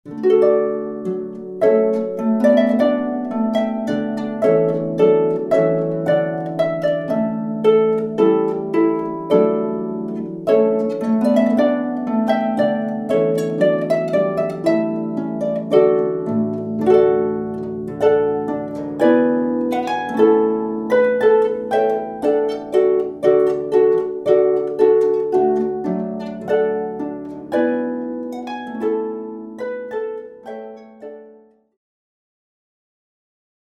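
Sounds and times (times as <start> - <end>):
harp: 0.1 - 31.7.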